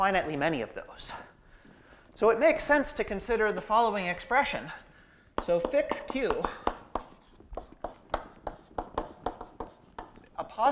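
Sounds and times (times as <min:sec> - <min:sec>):
speech: 0:00.0 - 0:01.3, 0:02.2 - 0:04.8, 0:05.4 - 0:06.7
writing on a board during a lecture: 0:05.4 - 0:10.2.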